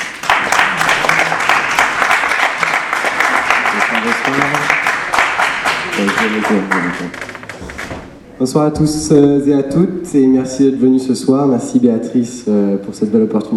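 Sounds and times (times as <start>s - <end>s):
audience applause: 0.0s - 7.9s
speech: 6.0s - 7.3s, 8.4s - 13.5s.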